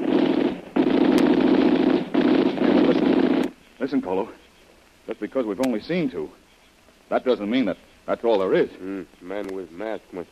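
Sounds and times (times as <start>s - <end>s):
machine gun fire: 0.0s - 3.6s
speech: 3.9s - 4.4s, 5.1s - 6.4s, 7.1s - 10.3s.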